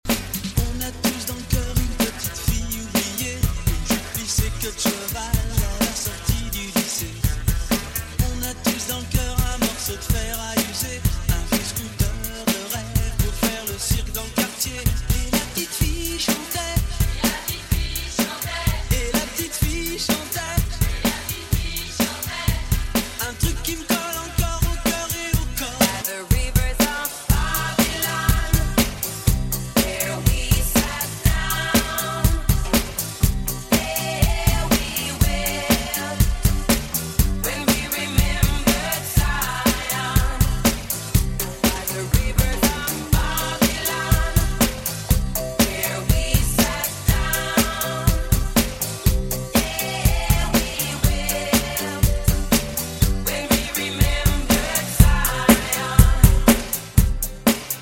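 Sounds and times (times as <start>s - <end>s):
1970s music mix: 0.0s - 57.7s.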